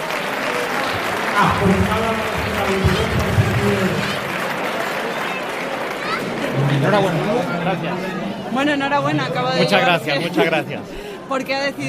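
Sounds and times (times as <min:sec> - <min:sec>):
crowd clapping at a cattle auction: 0:00.0 - 0:08.2
speech: 0:01.4 - 0:04.2, 0:06.7 - 0:11.8.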